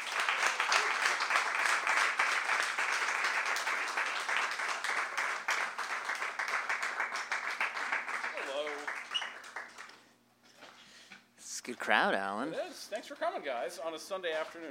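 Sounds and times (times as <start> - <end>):
audience applause: 0.0 - 10.0
speech: 11.7 - 14.6.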